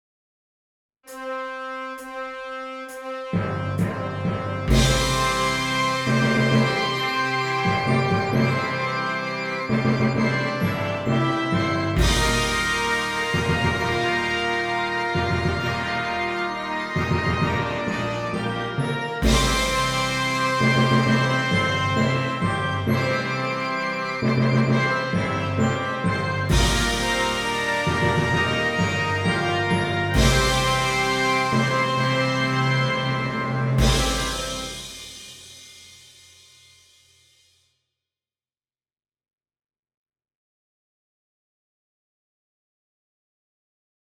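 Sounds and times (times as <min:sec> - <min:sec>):
horns in fifths: 0:01.1 - 0:35.8.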